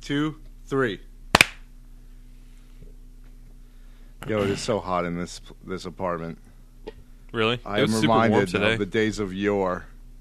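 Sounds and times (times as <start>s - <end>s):
speech: 0.1s - 1.1s, 4.2s - 9.9s
hands clapping: 1.4s - 1.6s.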